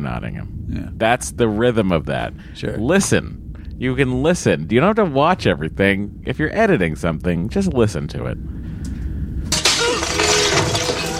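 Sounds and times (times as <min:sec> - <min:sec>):
speech: 0:00.0 - 0:08.5
pot breaking over someone's head: 0:09.5 - 0:11.1.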